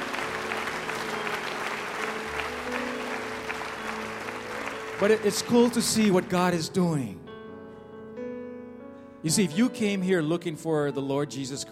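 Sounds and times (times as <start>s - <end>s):
audience applause: 0.0s - 6.6s
speech: 5.0s - 7.2s, 9.2s - 11.7s.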